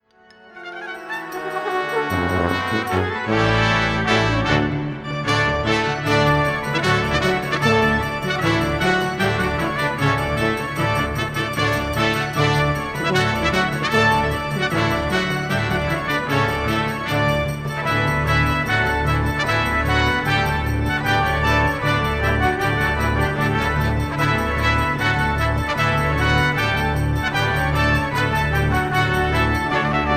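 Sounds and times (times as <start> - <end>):
brass playing a farandole: 0.4 - 30.1.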